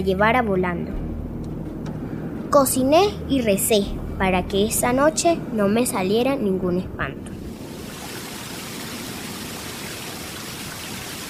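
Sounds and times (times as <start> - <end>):
speech: 0.0 - 1.0, 2.5 - 7.4
river flowing: 7.4 - 11.2.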